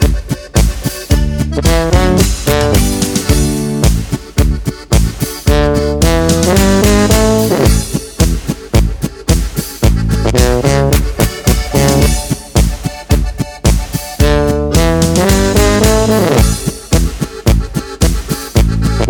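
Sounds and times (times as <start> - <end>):
A D G C chord progression with accompaniment: 0.0 - 19.0.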